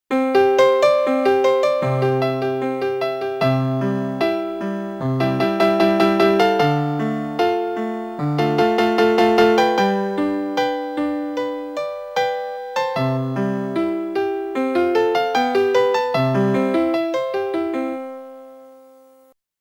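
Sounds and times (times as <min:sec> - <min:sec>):
melody: 0:00.1 - 0:19.1.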